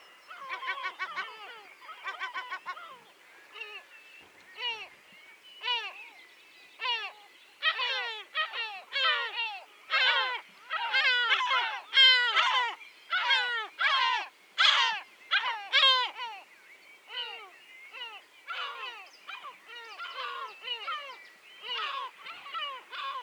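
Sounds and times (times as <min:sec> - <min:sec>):
many different birds calling: 0:00.0 - 0:04.9, 0:06.8 - 0:16.5, 0:17.1 - 0:23.2.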